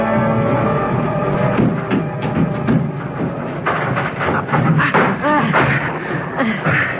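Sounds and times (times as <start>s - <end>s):
scraping knocks: 0.1s - 6.9s
door being forced open: 1.4s - 6.0s.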